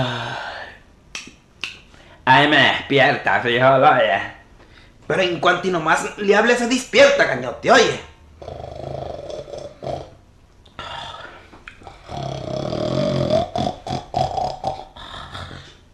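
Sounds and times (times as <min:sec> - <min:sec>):
speech: 0:02.3 - 0:04.4, 0:05.1 - 0:08.6
loud rough snoring: 0:08.4 - 0:10.2, 0:10.8 - 0:15.8.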